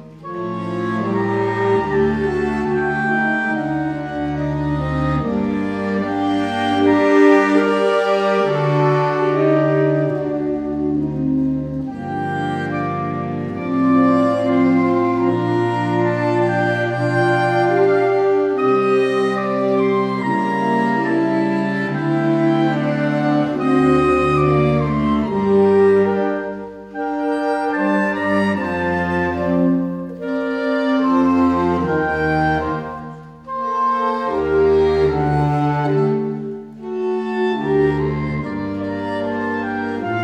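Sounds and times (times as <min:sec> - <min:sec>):
saxophone ensemble orchestra playing: 0:00.0 - 0:40.2.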